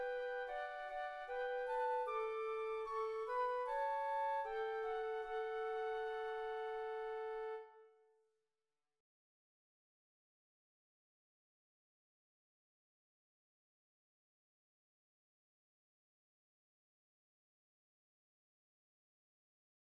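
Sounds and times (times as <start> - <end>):
flutes: 0.0 - 8.1.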